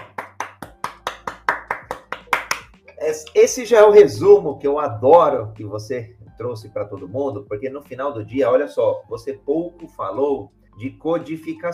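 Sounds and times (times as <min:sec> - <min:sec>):
live applause: 0:00.0 - 0:02.7
speech: 0:03.1 - 0:11.7.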